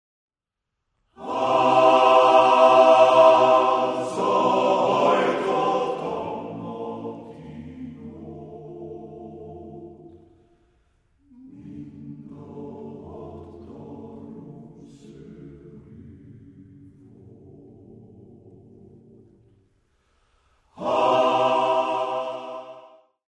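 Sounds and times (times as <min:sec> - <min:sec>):
Hungarian folk song: 0:01.1 - 0:23.1.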